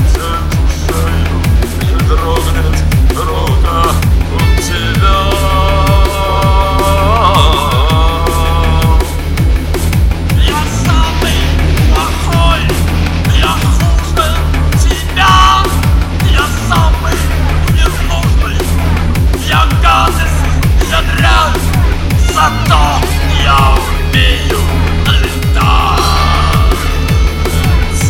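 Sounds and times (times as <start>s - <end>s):
hard style drum and bass remix: 0.0s - 28.0s.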